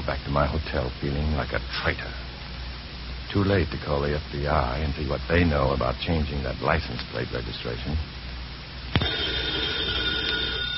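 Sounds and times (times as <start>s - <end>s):
speech: 0.1s - 2.3s, 3.3s - 8.2s
telephone ringing: 9.0s - 10.7s.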